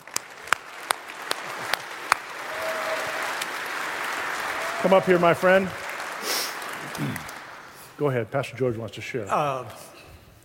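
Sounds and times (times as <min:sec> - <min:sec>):
church congregation applause welcoming a pastor to the platform: 0:00.0 - 0:08.0
speech: 0:04.8 - 0:05.8, 0:07.0 - 0:07.3, 0:08.0 - 0:09.9.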